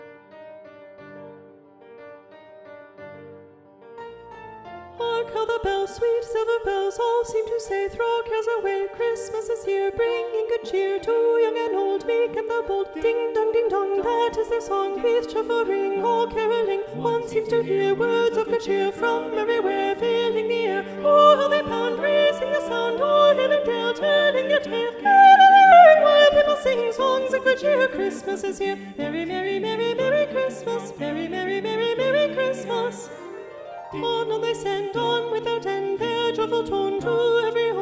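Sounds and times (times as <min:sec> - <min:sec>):
four-part SATB choir singing with soprano predominant: 0:05.0 - 0:37.8.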